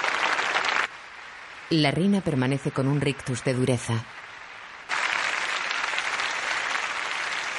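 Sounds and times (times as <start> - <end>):
huge crowd applauding in front of a big screen: 0.0 - 0.9, 4.9 - 7.5
speech: 1.7 - 4.2.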